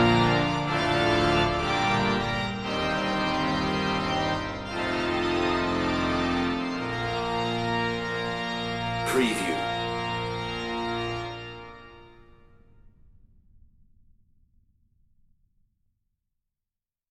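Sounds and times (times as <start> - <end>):
church organ playing a wedding march: 0.0 - 12.2.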